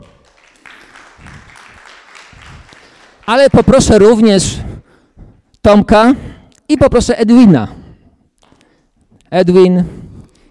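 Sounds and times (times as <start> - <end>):
group applauding: 0.0 - 4.4
speech: 3.3 - 4.7, 5.6 - 7.8, 9.3 - 10.0.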